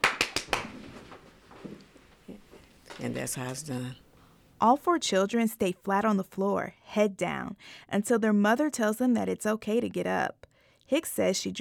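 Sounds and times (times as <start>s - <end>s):
hand claps imitating gunshots: 0.0s - 0.8s
quiet shuffling and faint rustling: 0.6s - 3.2s
speech: 3.0s - 4.0s, 4.6s - 11.6s.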